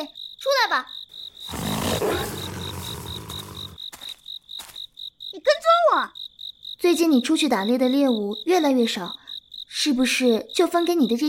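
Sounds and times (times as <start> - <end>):
speech: 0.0 - 1.0, 7.0 - 9.2, 9.8 - 11.2
wolf pack: 1.5 - 3.8.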